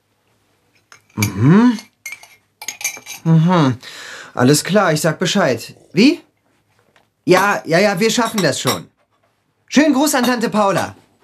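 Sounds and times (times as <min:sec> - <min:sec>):
cutlery and dishes clinking at breakfast in a kitchen: 0:00.8 - 0:03.3, 0:07.3 - 0:09.2, 0:10.0 - 0:11.0
speech: 0:01.2 - 0:01.9, 0:03.3 - 0:06.3, 0:07.2 - 0:08.9, 0:09.7 - 0:11.0.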